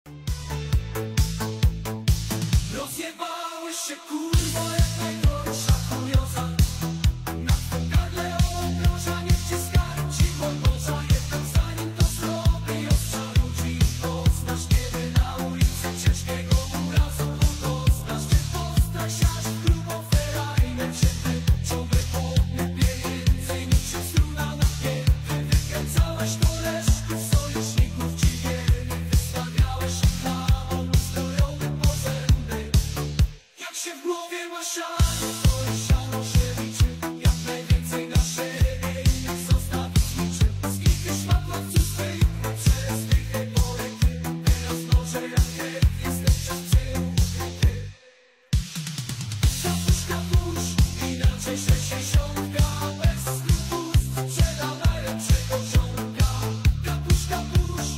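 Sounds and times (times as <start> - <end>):
brutal disco music: 0.1 - 57.9.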